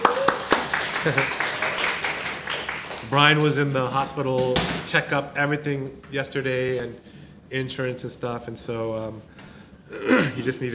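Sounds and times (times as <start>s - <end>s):
crowd applause: 0.0s - 3.4s
speech: 1.0s - 1.4s, 3.0s - 9.3s, 9.9s - 10.7s.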